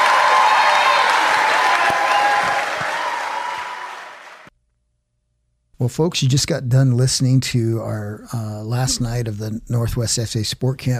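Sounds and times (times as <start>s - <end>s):
audience round of applause: 0.0s - 4.5s
speech: 5.8s - 10.9s.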